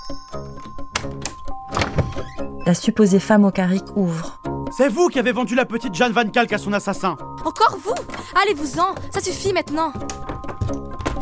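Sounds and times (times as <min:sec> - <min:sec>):
ringing a doorbell: 0:00.0 - 0:02.5
speech: 0:00.1 - 0:01.8, 0:02.6 - 0:10.8.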